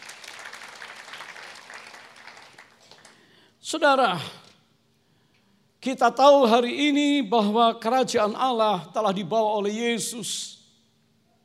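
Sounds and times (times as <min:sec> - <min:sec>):
audience applause: 0:00.0 - 0:03.3
speech: 0:03.7 - 0:04.4, 0:05.8 - 0:10.6.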